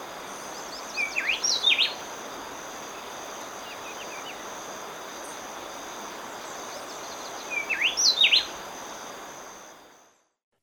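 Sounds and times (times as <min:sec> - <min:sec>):
steady high insect drone: 0:00.0 - 0:10.4
Speckle-breasted wren singing: 0:00.4 - 0:02.0, 0:07.1 - 0:08.5.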